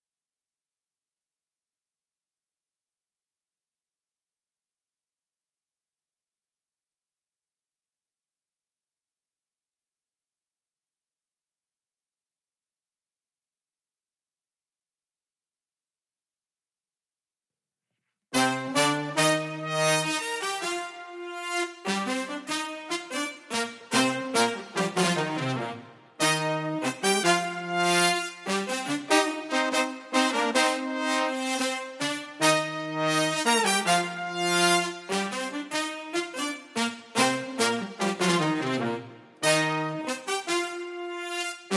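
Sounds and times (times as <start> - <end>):
brass instruments: 18.3 - 41.7.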